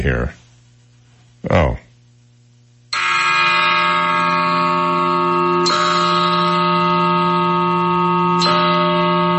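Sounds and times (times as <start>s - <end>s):
speech: 0.0s - 0.4s, 1.4s - 1.9s
big bell ringing: 3.0s - 9.3s.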